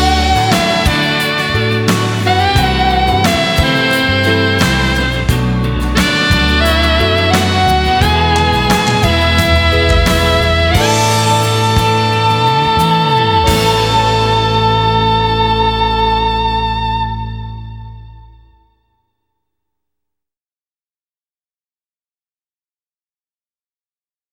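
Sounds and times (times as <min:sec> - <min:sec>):
emotional moving saxophone solo: 0:00.0 - 0:18.6.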